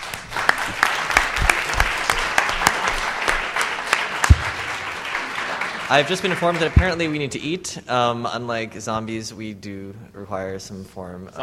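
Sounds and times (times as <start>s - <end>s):
audience clapping: 0.0s - 7.6s
speech: 5.9s - 11.4s.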